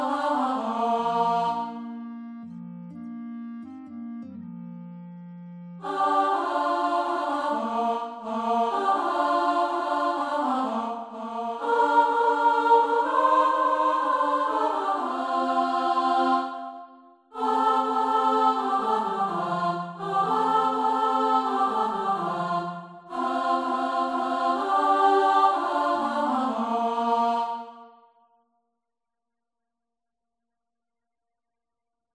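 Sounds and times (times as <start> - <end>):
full chorus singing: 0.0 - 2.0, 5.8 - 28.1.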